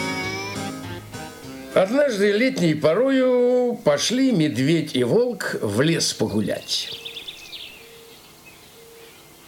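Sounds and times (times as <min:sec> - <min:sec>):
speech: 0:01.8 - 0:07.0
birdsong in a forest on a summer day: 0:06.5 - 0:09.4.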